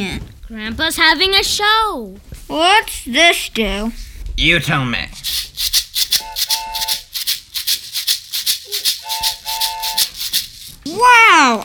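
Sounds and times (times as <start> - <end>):
speech: 0.0 - 5.8, 11.0 - 11.6
oatmeal box shaker with dried beans rattling: 5.2 - 11.6.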